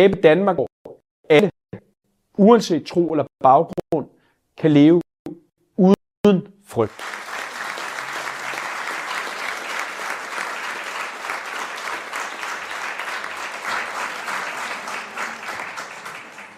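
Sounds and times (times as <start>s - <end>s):
speech: 0.0s - 0.7s, 1.3s - 5.1s, 5.8s - 7.2s
audience applause: 6.9s - 16.5s.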